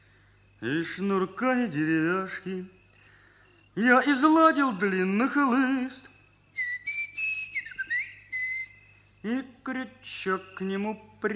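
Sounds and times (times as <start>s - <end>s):
speech: 0.6s - 2.8s, 3.8s - 6.1s, 9.2s - 11.3s
long drawn-out human whistle: 5.9s - 9.4s, 10.2s - 10.8s.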